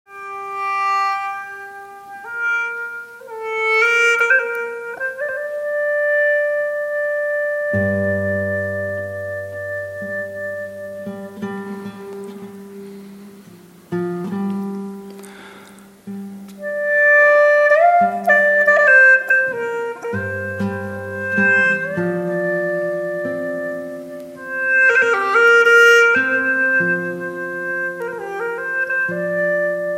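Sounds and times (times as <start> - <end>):
live hulusi solo: 0.1 - 29.9.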